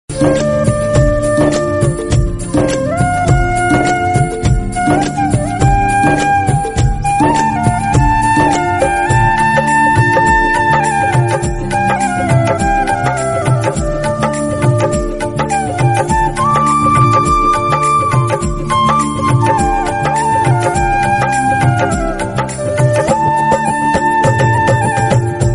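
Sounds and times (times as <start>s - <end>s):
flute dhun: 0.1s - 25.5s.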